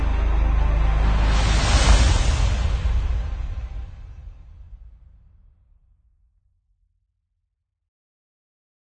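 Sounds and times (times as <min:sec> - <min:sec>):
epic trailer music: 0:00.0 - 0:05.2.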